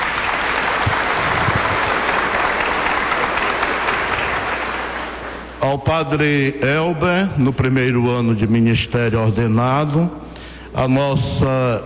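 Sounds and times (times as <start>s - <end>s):
crowd applauding: 0.0s - 5.6s
speech: 5.6s - 11.8s.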